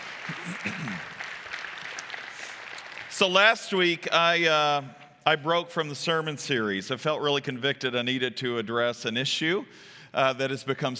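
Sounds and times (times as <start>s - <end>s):
audience applause: 0.0s - 3.3s
speech: 0.3s - 1.2s, 3.2s - 10.9s.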